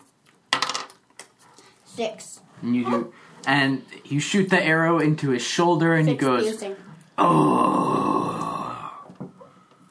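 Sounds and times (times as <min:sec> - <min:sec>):
dice clattering onto a hard table: 0:00.5 - 0:01.0
speech: 0:02.0 - 0:08.4.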